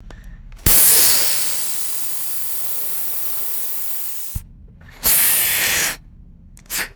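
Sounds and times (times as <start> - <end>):
pneumatic air releases and hissing: 0.6 - 4.4, 5.0 - 6.0, 6.7 - 6.9.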